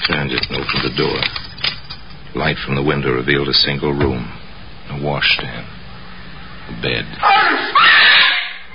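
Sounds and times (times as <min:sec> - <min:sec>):
speech: 0:00.1 - 0:01.4, 0:02.4 - 0:05.8, 0:06.7 - 0:08.2
woman screaming in horror: 0:07.2 - 0:08.6.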